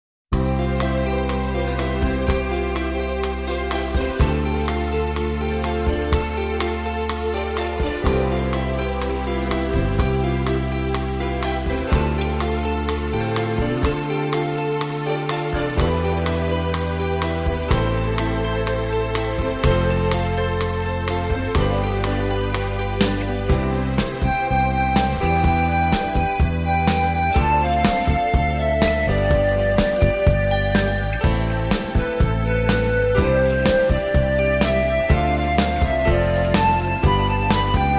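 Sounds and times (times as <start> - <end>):
instrumental music: 0.3 - 37.9.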